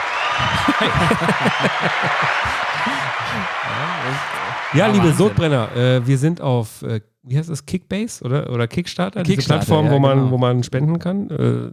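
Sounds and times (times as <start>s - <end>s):
applause: 0.0s - 6.3s
voices talking and chuckling: 0.4s - 5.4s
speech: 0.8s - 11.7s.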